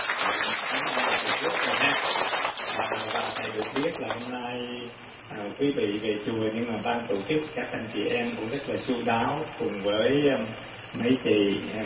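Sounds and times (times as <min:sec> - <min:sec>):
audience applause at a Buddhist temple: 0:00.0 - 0:04.3
speech: 0:03.4 - 0:11.8.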